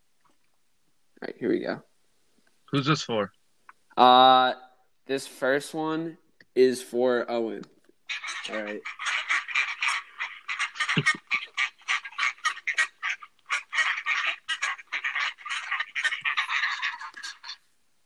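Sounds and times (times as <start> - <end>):
speech: 1.2 - 1.9, 2.7 - 3.4, 4.0 - 9.0, 11.0 - 11.2
duck quacking: 8.1 - 17.6.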